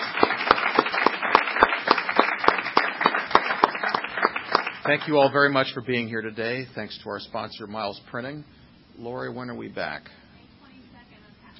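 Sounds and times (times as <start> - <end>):
applause: 0.0 - 5.4
speech: 4.8 - 10.2.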